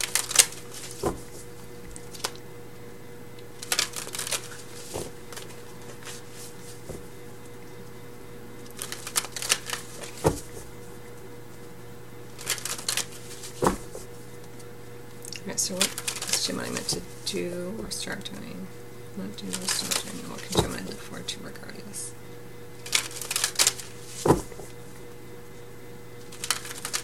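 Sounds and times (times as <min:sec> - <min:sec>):
tarot cards being shuffled and drawn: 0:00.0 - 0:02.4, 0:03.5 - 0:07.6, 0:08.6 - 0:11.0, 0:12.3 - 0:14.7, 0:15.8 - 0:18.0, 0:19.4 - 0:21.1, 0:22.8 - 0:25.0, 0:26.2 - 0:27.0
speech: 0:15.7 - 0:22.4.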